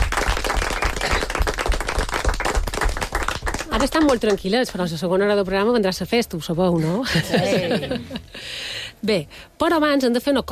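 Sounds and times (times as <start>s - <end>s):
studio audience applause: 0.0s - 4.4s
speech: 3.7s - 10.5s
laughter: 6.9s - 8.3s.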